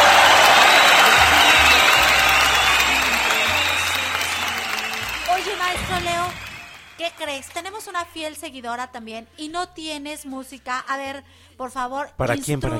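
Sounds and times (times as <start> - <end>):
audience applause: 0.0 - 7.9
speech: 7.4 - 12.7.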